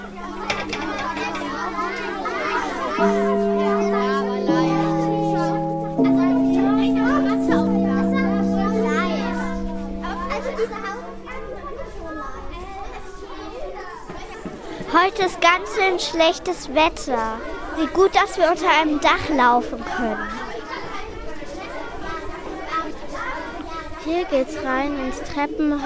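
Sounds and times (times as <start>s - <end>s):
children arriving and playing at school: 0.0s - 25.8s
speech: 3.0s - 3.2s, 15.0s - 20.4s, 24.2s - 25.8s.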